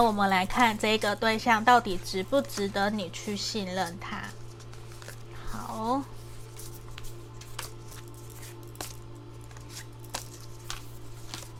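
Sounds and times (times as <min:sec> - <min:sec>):
speech: 0:00.0 - 0:04.4, 0:05.7 - 0:06.2
low steady hum: 0:00.0 - 0:11.5
tarot cards being shuffled and drawn: 0:03.8 - 0:11.5.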